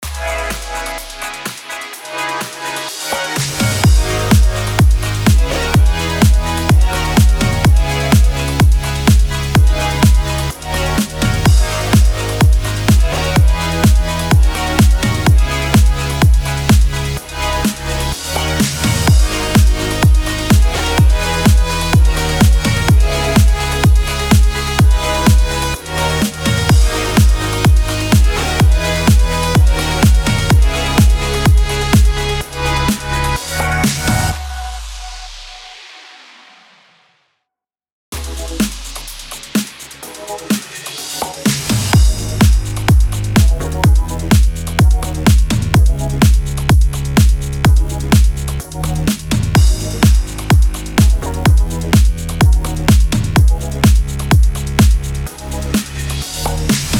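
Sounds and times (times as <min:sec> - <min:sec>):
EDM background bed in G sharp minor at 126 bpm: 0:00.0 - 0:35.3, 0:38.2 - 0:56.9.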